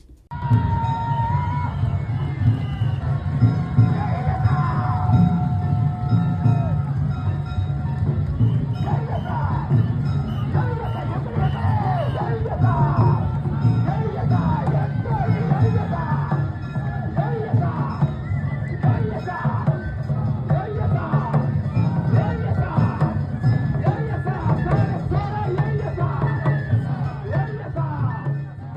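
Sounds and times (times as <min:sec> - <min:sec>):
parade crowd around the Funadanjiri boat float of Imazu Fukuo Shrine: 0:00.0 - 0:28.7
voices shouting: 0:00.4 - 0:28.1.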